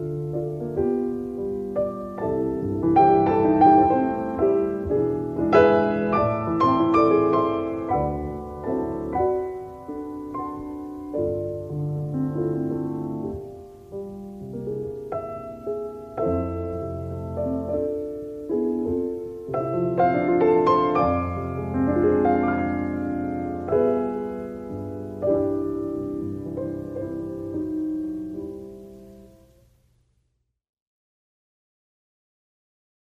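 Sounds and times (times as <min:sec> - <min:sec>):
piano improvisation: 0:00.0 - 0:29.5.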